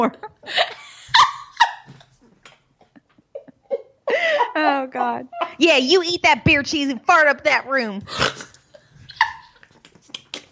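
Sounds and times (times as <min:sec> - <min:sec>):
speech: 0:00.0 - 0:00.8, 0:04.6 - 0:08.4
person snorting while laughing: 0:08.1 - 0:09.8.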